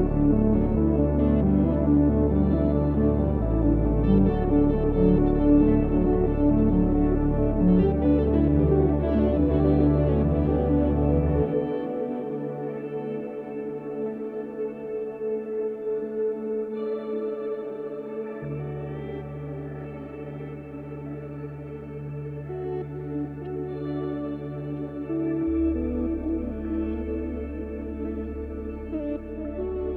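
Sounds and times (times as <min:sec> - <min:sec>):
dreamy space-y ambient music: 0:00.0 - 0:29.9.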